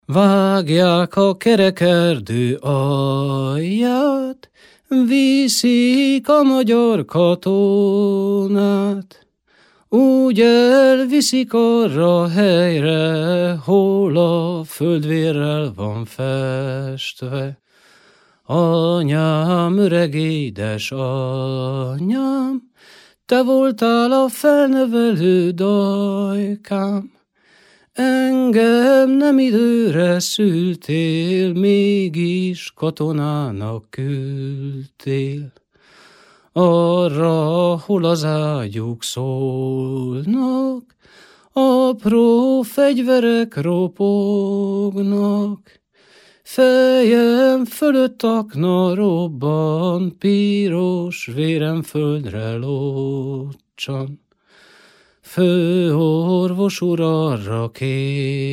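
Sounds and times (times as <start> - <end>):
Hungarian folk song: 0.0 - 58.5.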